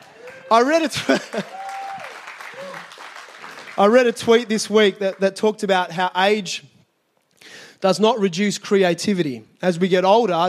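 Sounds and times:
audience clapping: 0.0s - 5.4s
speech: 0.5s - 1.6s, 3.8s - 6.7s, 7.4s - 10.4s.

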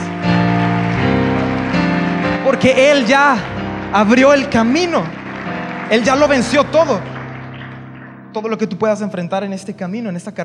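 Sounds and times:
audience applause: 0.3s - 8.3s
speech: 2.6s - 5.2s, 5.9s - 7.1s, 8.4s - 10.4s.

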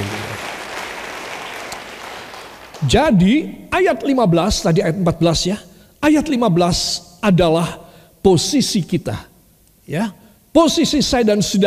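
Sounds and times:
crowd clapping: 0.0s - 3.0s
speech: 2.8s - 9.3s, 9.9s - 11.6s.

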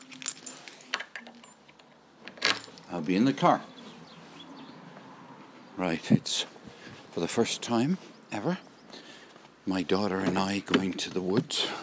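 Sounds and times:
keys jangling: 0.0s - 3.0s
speech: 2.9s - 3.7s, 5.8s - 6.6s, 7.2s - 9.0s, 9.6s - 11.8s.

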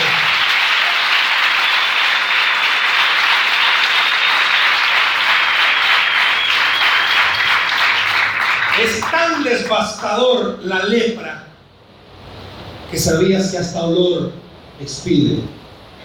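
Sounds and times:
crowd applause: 0.0s - 9.7s
speech: 9.2s - 11.4s, 12.9s - 15.6s.

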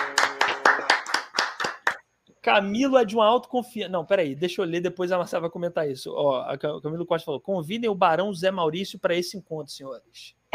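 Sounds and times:
audience applause: 0.0s - 2.0s
speech: 2.4s - 10.5s.

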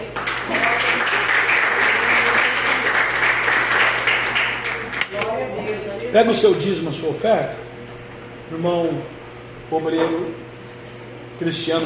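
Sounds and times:
audience clapping in praise: 0.0s - 5.1s
speech: 6.1s - 7.7s, 8.5s - 10.4s, 11.4s - 11.8s.

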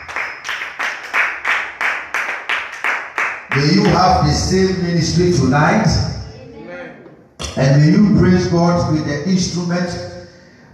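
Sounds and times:
hands clapping: 0.0s - 4.3s
speech: 3.6s - 6.2s, 7.6s - 10.1s.

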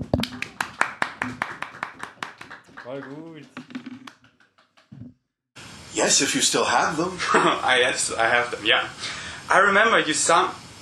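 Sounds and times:
hands clapping: 0.0s - 5.0s
speech: 2.9s - 3.6s, 6.0s - 10.6s
laughter: 7.1s - 7.9s.

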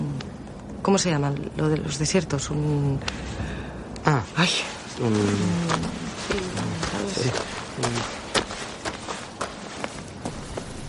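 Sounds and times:
speech: 0.8s - 8.2s
footsteps of two people walking: 4.4s - 10.8s.

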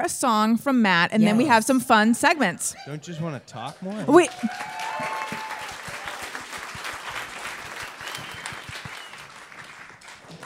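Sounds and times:
speech: 0.0s - 5.1s
crowd clapping: 3.8s - 10.4s.

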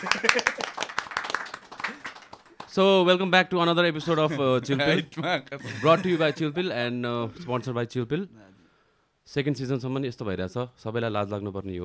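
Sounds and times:
speech: 0.0s - 0.6s, 2.8s - 8.5s, 9.3s - 11.8s
laughter: 0.0s - 0.9s, 4.0s - 6.6s
audience clapping for a guest on a Nepali talk show: 0.0s - 2.8s.

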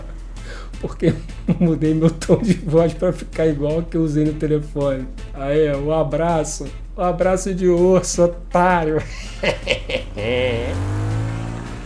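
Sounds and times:
speech: 0.8s - 11.0s
laughter: 0.9s - 2.9s, 8.9s - 10.9s
car engine accelerating: 9.7s - 11.8s.

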